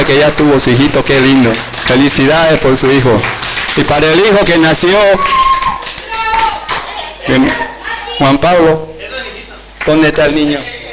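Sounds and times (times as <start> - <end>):
group applauding a mother at a San Isidro birthday celebration: 0.0 - 8.2, 9.8 - 10.0
speech: 0.1 - 5.6, 7.3 - 8.9, 9.8 - 10.7.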